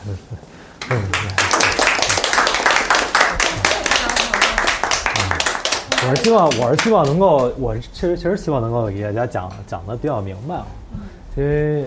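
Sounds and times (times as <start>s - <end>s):
speech: 0.1s - 1.9s, 6.0s - 10.8s, 11.4s - 11.8s
audience applause: 0.8s - 7.5s.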